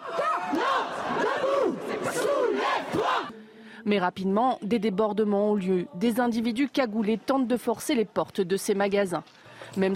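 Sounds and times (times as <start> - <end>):
street protest crowd chanting loudly: 0.0 - 3.6
speech: 3.8 - 9.9.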